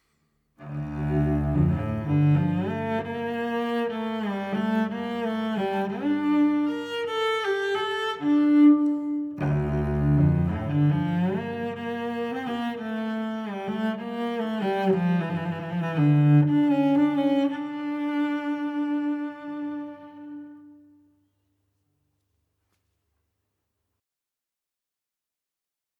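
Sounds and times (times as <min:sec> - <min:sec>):
cello: 0:00.6 - 0:21.2.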